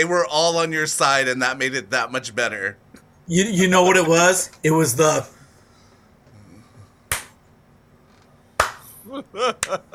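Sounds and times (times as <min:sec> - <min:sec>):
speech: 0:00.0 - 0:05.4, 0:09.1 - 0:09.9
slow clap: 0:07.1 - 0:07.4, 0:08.6 - 0:09.0.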